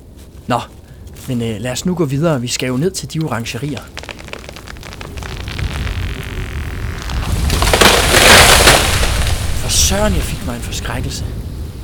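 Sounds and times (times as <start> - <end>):
speech: 0.5 - 4.0, 9.9 - 11.4
tree crashing down in strong wind: 3.4 - 11.0
strong wind roaring: 3.8 - 11.8.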